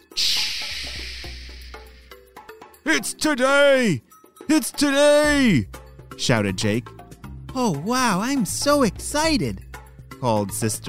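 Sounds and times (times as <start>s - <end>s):
rain hissing: 0.2s - 2.1s
speech: 2.9s - 7.0s, 7.6s - 9.6s, 10.2s - 10.8s.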